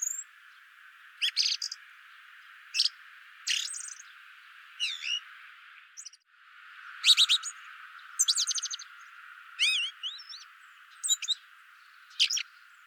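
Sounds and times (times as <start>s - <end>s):
Eurasian blackbird Turdus merula chink calls: 0.0s - 0.3s, 1.2s - 1.8s, 2.7s - 4.1s, 4.8s - 5.2s, 6.0s - 6.2s, 7.0s - 12.8s.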